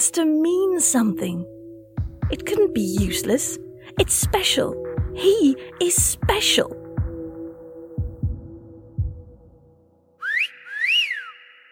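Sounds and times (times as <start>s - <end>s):
speech: 0.1s - 1.6s, 2.3s - 6.8s
heartbeat-like thumps: 2.0s - 3.2s, 6.0s - 9.5s
person whistling: 10.2s - 11.7s.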